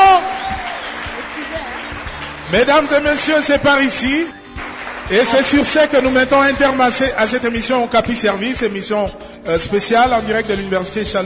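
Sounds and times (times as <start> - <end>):
audience applause: 0.0 - 3.4, 4.6 - 6.2
speech: 2.5 - 4.4, 5.1 - 11.2.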